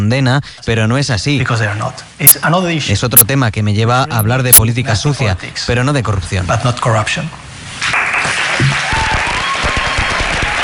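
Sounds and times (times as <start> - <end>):
speech: 0.0 - 8.0
students applauding: 7.9 - 10.6.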